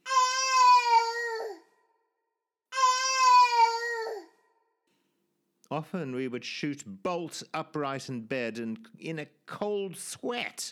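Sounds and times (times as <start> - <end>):
bush baby piercing scream: 0.0 - 1.6, 2.7 - 4.3
speech: 5.7 - 10.7.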